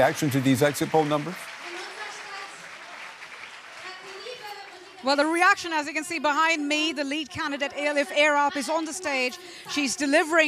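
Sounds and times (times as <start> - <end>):
speech: 0.0 - 1.5, 5.0 - 10.4
crowd cheering and clapping at a Left Party election-night gathering in Berlin: 0.0 - 6.9.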